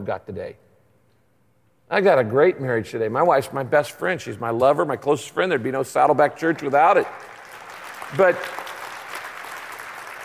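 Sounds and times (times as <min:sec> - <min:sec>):
speech: 0:00.0 - 0:00.7, 0:01.9 - 0:07.3, 0:08.1 - 0:08.6
thin scattered audience applause: 0:07.1 - 0:10.2.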